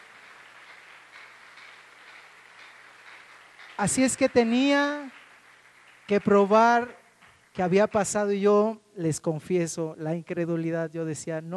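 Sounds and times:
crowd applauding: 0.0s - 8.2s
speech: 3.8s - 5.2s, 6.1s - 7.0s, 7.6s - 11.5s.

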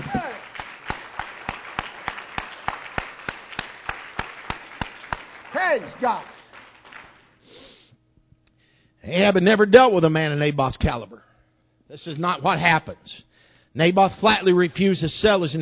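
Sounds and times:
audience hand clapping: 0.0s - 7.4s
speech: 5.7s - 6.3s, 9.0s - 11.3s, 11.9s - 15.6s.

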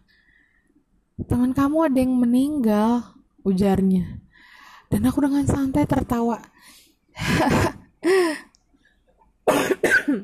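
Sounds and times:
speech: 1.2s - 4.2s, 4.9s - 8.4s
person coughing: 9.5s - 10.2s.

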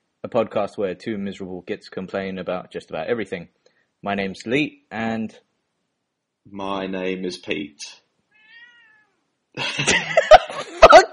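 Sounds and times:
speech: 0.3s - 5.5s, 6.4s - 8.0s, 9.6s - 11.0s
house cat meowing: 8.4s - 9.1s
laughter: 9.6s - 11.1s.

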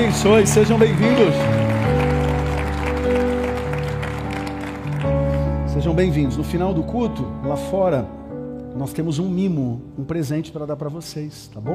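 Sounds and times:
audience applause: 0.0s - 5.5s
sustained low keyboard chords: 0.0s - 11.7s
speech: 0.1s - 1.7s, 5.8s - 8.2s, 8.8s - 11.7s.

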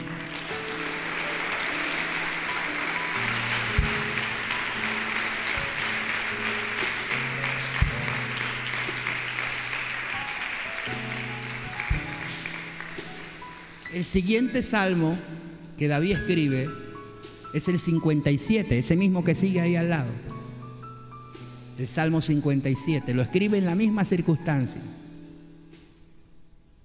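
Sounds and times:
audience applause: 0.0s - 13.8s
held keyboard chords: 0.0s - 25.9s
low thumps: 3.6s - 4.5s, 11.8s - 12.3s
speech: 14.0s - 16.8s, 17.5s - 20.3s, 21.8s - 25.0s.

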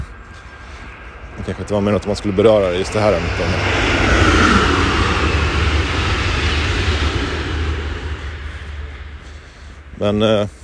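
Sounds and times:
passing train: 0.0s - 10.6s
speech: 1.5s - 3.9s, 10.0s - 10.6s.

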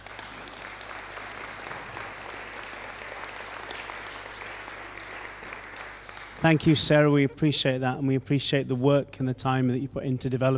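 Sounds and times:
crowd applause: 0.0s - 7.8s
speech: 6.4s - 10.5s.

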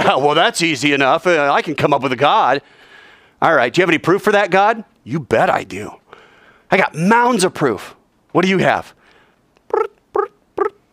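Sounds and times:
speech: 0.0s - 2.8s, 3.4s - 6.0s, 6.7s - 9.0s
voice imitating crickets chirping: 9.6s - 10.9s.

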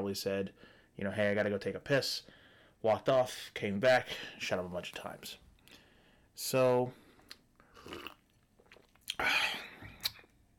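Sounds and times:
speech: 0.0s - 5.4s, 6.4s - 7.0s, 7.8s - 8.2s
sip of a lemon drop cocktail: 7.7s - 9.2s.

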